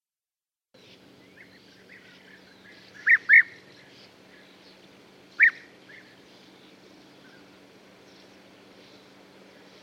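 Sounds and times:
European bee-eater calls: 0.8 - 9.8.

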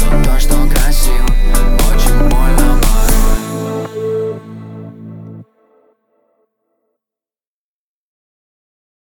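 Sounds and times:
low bass tone: 0.0 - 5.5.

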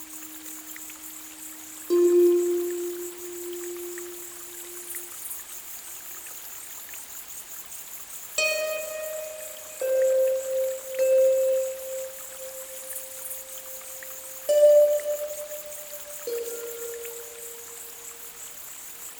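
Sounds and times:
seashore waves: 0.0 - 5.0, 8.4 - 18.4
flowing water: 0.0 - 19.1.

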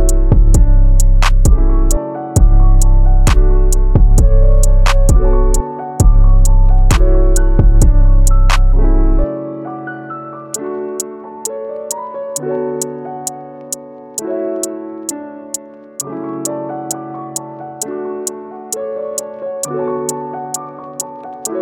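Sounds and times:
lo-fi beat: 0.0 - 9.2, 18.7 - 21.6.

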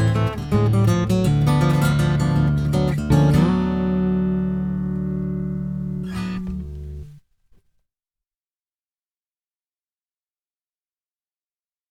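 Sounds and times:
instrumental music: 0.0 - 7.2.

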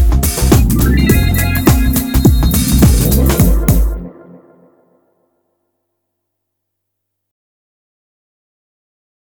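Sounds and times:
lounge groove: 0.0 - 4.1.

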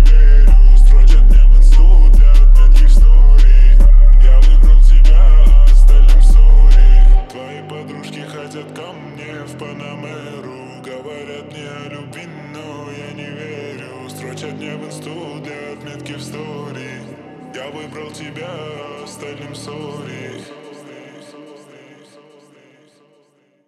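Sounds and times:
low bass: 0.0 - 7.3.

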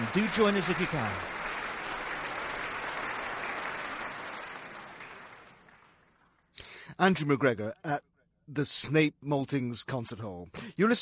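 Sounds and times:
concert hall applause: 0.0 - 6.8
speech: 0.2 - 1.4, 7.0 - 11.0.

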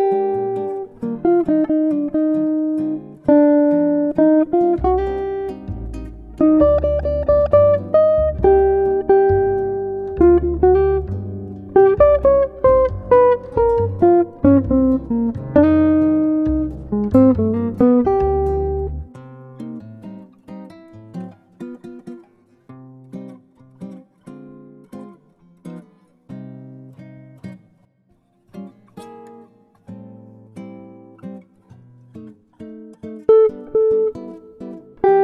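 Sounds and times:
morning jazz music: 0.0 - 19.1.

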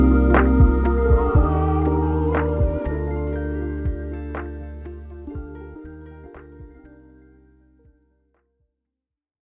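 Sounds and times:
lofi music: 0.0 - 7.3.

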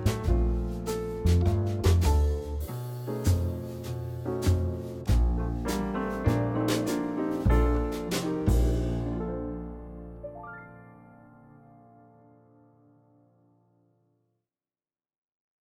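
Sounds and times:
jazz instrumental: 0.0 - 11.0.

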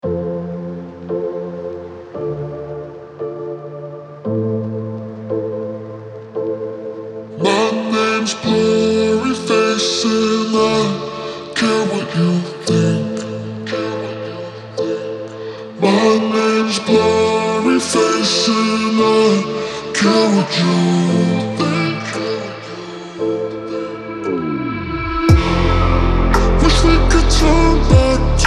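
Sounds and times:
slowed reverb music: 0.0 - 28.4.

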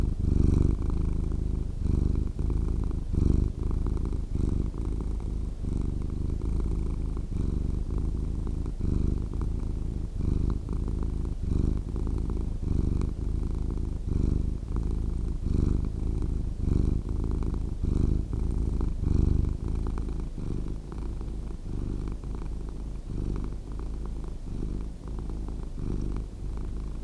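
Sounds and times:
cat purring: 0.0 - 27.0.

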